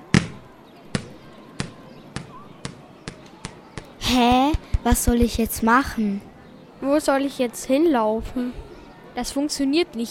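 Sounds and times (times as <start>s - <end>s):
ball thrown up and bouncing: 0.0s - 5.5s
speech: 4.1s - 10.0s.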